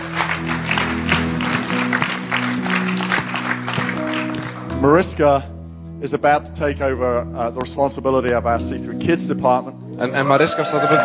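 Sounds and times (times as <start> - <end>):
church audience applause: 0.0 - 4.7, 10.6 - 11.0
speech: 4.8 - 11.0.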